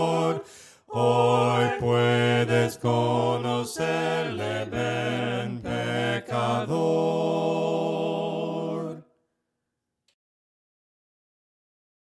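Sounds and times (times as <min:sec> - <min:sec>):
voices singing hymns a cappella: 0:00.0 - 0:09.1.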